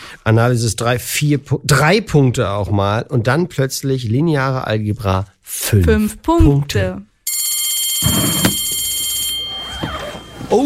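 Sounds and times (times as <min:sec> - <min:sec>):
speech: 0:00.1 - 0:07.1
bell ringing to signal time is up: 0:07.3 - 0:10.6.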